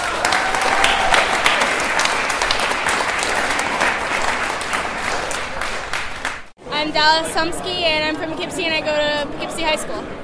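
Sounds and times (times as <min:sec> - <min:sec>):
crowd applauding: 0:00.0 - 0:06.5
speech: 0:06.8 - 0:10.2.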